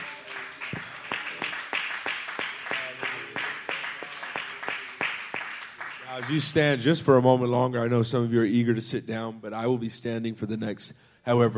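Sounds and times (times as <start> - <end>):
audience clapping hands: 0.0 - 6.9
speech: 6.2 - 11.5.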